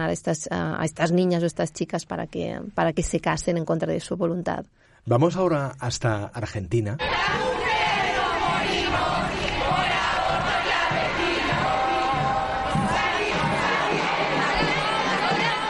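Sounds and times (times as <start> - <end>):
speech: 0.0 - 8.1
large crowd chanting and shouting at a feminist street protest: 7.0 - 15.6.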